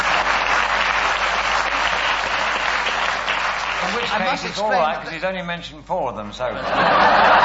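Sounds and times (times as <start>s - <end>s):
round of applause: 0.0s - 4.9s
speech: 4.1s - 7.4s
laughter: 6.6s - 7.4s.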